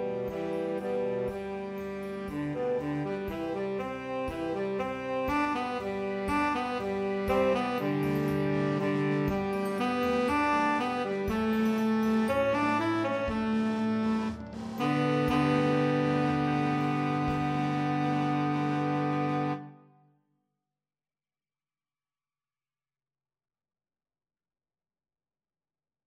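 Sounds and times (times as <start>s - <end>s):
B-flat tenor saxophone: 0.0s - 20.0s.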